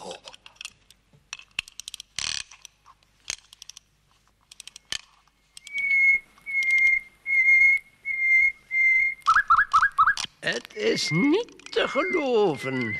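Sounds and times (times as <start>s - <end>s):
mechanical nightingale song from wind-up toy: 4.6s - 12.9s
speech: 10.8s - 12.9s.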